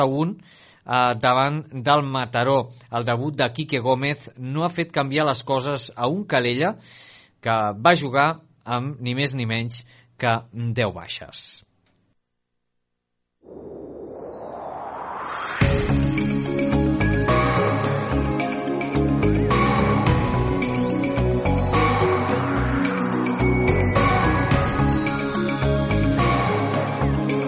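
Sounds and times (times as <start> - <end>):
speech: 0.0 - 11.7
rising whoosh opening a radio weather forecast theme: 13.4 - 18.9, 19.9 - 26.9
radio weather forecast jingle with chiming tones and bass beat: 15.6 - 27.4.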